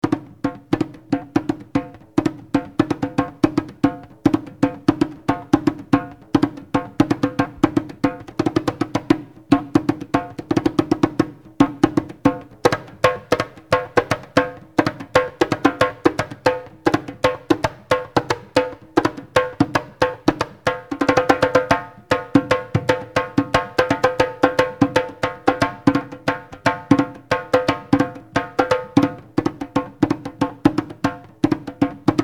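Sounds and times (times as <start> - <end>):
takouta solo rhythms: 0.0 - 32.2.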